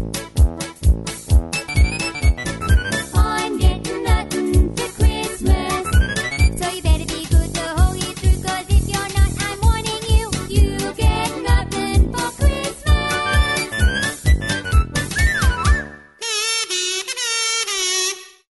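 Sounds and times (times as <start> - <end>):
square dance music: 0.0 - 16.0
background vocals: 3.1 - 6.8, 7.5 - 13.6.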